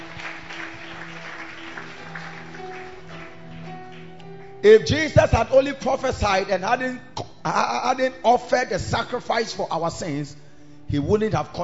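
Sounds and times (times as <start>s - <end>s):
audience clapping hands: 0.0s - 4.6s
speech: 4.6s - 11.6s.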